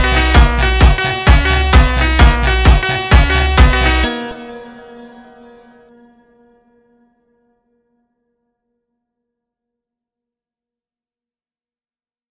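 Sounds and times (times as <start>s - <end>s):
Brazilian funk phonk music: 0.0s - 4.6s.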